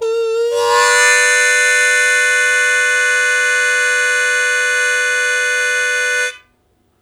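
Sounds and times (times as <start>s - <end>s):
blues harmonica chords in G: 0.0s - 6.4s.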